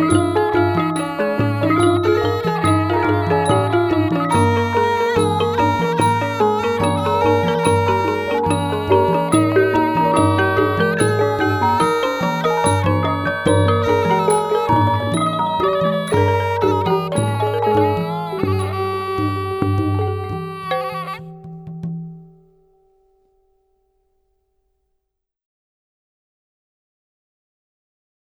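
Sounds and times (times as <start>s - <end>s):
full pinpeat ensemble playing: 0.0s - 22.2s.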